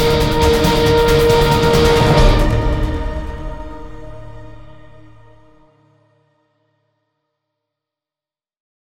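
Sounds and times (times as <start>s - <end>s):
battle music loop: 0.0s - 5.6s.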